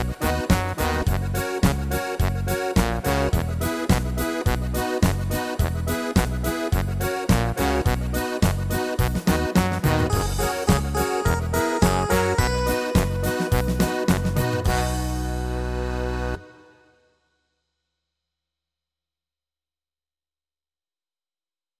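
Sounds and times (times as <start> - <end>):
instrumental music: 0.0 - 17.2.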